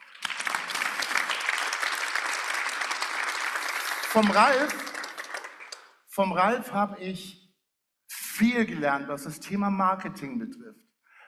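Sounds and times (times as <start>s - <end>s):
audience applause: 0.0s - 5.9s
speech: 4.1s - 4.9s, 6.2s - 7.4s, 8.4s - 10.9s.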